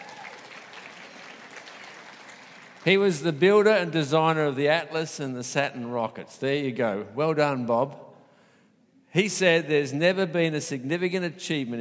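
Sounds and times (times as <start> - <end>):
audience clapping: 0.0 - 3.1
speech: 2.8 - 8.0, 9.2 - 11.7.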